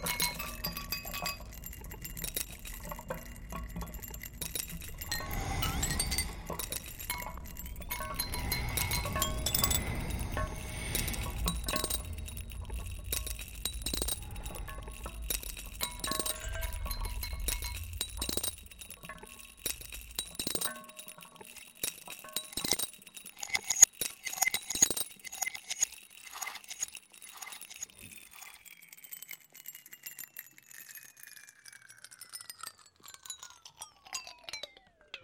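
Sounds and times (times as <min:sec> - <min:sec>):
ringing tone gliding down in pitch: 0:00.0 - 0:20.8
ice cubes dropped into glasses and a mug: 0:00.0 - 0:35.1
low rumble: 0:03.9 - 0:20.3.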